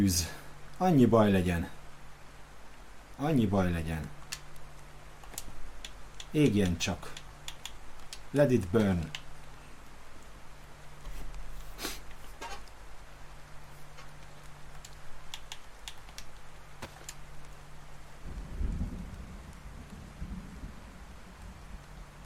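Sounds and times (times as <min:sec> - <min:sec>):
speech: 0:00.0 - 0:01.8, 0:03.2 - 0:04.2, 0:06.3 - 0:07.2, 0:08.3 - 0:09.2
faint low hum: 0:00.0 - 0:22.2
steady rain: 0:00.0 - 0:22.2
deep rumble: 0:18.2 - 0:22.2.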